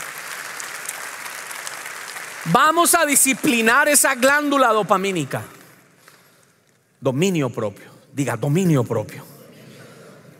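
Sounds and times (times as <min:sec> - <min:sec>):
audience applause: 0:00.0 - 0:05.8
speech: 0:02.4 - 0:05.6, 0:07.0 - 0:09.3.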